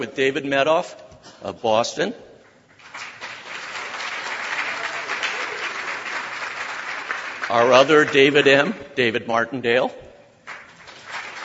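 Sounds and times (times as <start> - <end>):
speech: 0.0 - 2.3, 7.5 - 10.1
audience applause: 2.8 - 8.5, 10.5 - 11.4.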